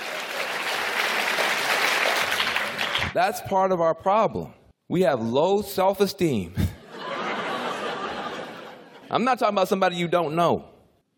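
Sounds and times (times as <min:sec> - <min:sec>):
audience applause at a political talk: 0:00.0 - 0:03.2
speech: 0:03.1 - 0:06.6, 0:09.1 - 0:10.7
laughter: 0:06.6 - 0:09.1.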